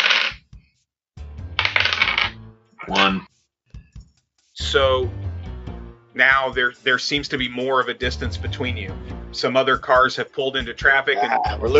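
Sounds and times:
dice rolled on a table: 0.0 - 0.4, 1.6 - 2.4
speech: 2.9 - 3.4, 4.7 - 5.2, 6.2 - 11.7.

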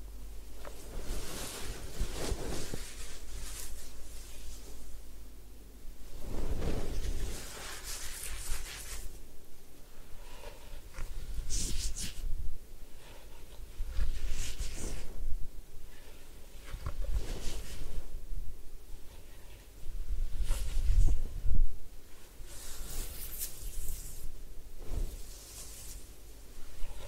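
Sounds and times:
steady low hum: 0.0 - 27.0
head spa hair wash and massage rustling and rubbing: 0.6 - 5.0, 6.0 - 9.3, 10.8 - 12.4, 13.3 - 18.3, 19.0 - 27.0.

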